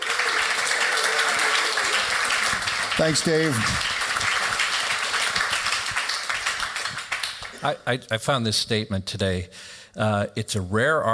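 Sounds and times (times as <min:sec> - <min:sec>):
audience applause: 0:00.0 - 0:07.8
speech: 0:03.0 - 0:04.0, 0:07.6 - 0:11.1.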